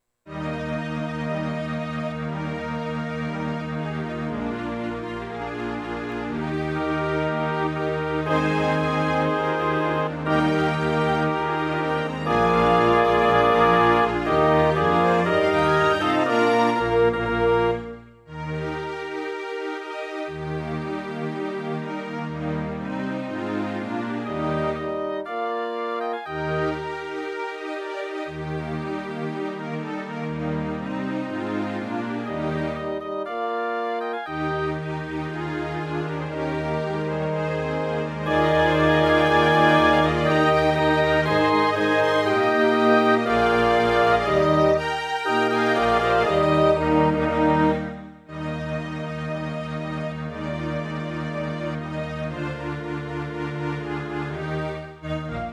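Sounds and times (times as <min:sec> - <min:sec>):
horn concerto with orchestra: 0:00.3 - 0:55.5.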